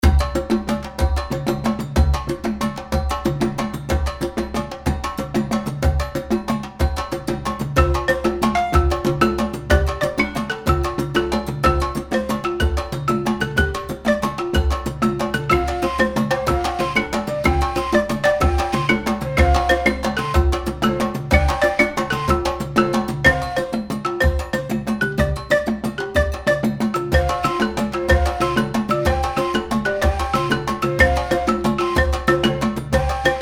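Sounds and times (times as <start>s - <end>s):
West Africa music mix: 0.0s - 33.4s.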